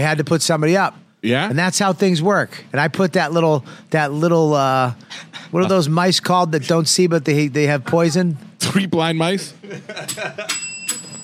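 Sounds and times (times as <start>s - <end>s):
speech: 0.0s - 10.7s
laughter: 7.6s - 8.5s, 9.4s - 10.6s
weak barely working bell ringing: 10.4s - 11.2s.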